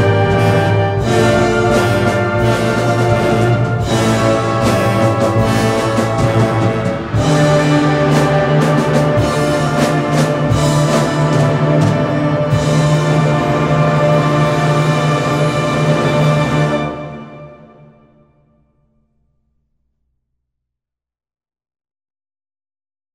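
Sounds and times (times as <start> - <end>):
band playing a toccata: 0.0 - 17.8.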